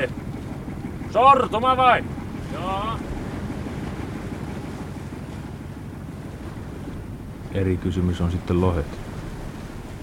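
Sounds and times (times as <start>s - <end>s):
buffeting wind: 0.0s - 10.0s
restless sea waves splashing over a boat's bow: 0.0s - 10.0s
speech: 1.1s - 3.1s, 7.6s - 9.0s.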